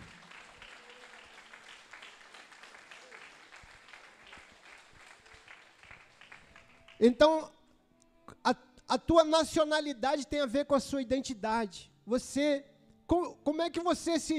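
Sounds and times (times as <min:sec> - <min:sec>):
crowd applauding: 0:00.0 - 0:07.1
speech: 0:07.0 - 0:07.6, 0:08.4 - 0:14.3.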